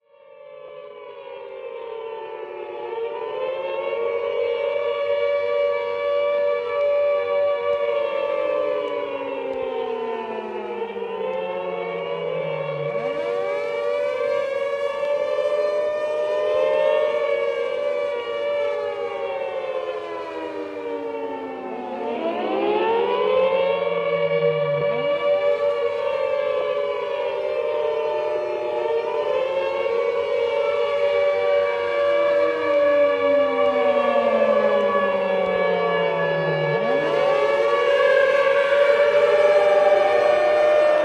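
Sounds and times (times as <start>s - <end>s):
air raid sirens: 0.0s - 41.0s.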